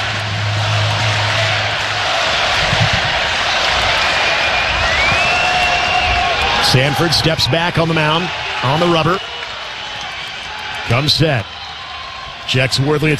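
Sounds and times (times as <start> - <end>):
baseball stadium crowd roaring: 0.0 - 13.1
faint high whistling tone: 4.2 - 6.2
speech: 6.7 - 9.4, 10.9 - 11.6, 12.5 - 13.1.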